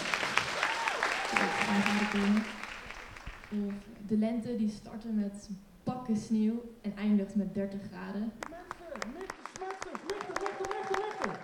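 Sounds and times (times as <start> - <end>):
warm applause from audience: 0.0 - 3.8, 8.4 - 11.4
voices calling out: 1.1 - 2.9
speech: 1.7 - 2.6, 3.5 - 8.5.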